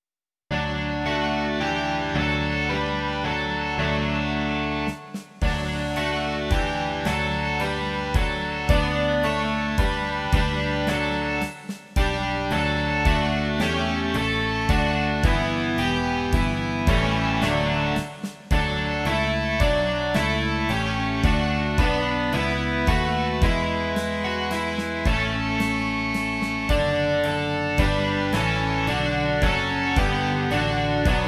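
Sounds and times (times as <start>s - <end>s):
rock music: 0.5s - 31.2s.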